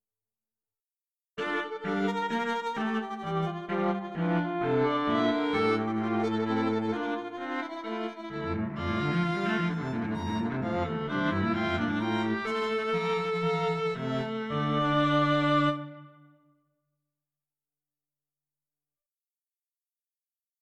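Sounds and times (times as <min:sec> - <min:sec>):
string quartet playing: 0:01.5 - 0:16.2.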